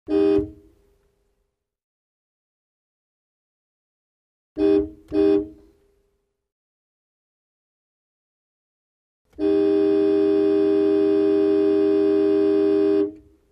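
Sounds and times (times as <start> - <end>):
car horn klaxon: 0.1 - 0.7, 4.6 - 5.8, 9.3 - 13.4.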